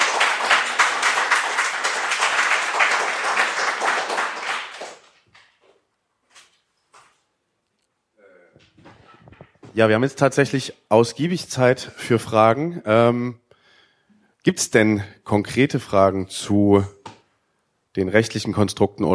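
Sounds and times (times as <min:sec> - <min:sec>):
audience applause: 0:00.0 - 0:05.4
speech: 0:09.8 - 0:13.4, 0:14.4 - 0:17.0, 0:18.0 - 0:19.1.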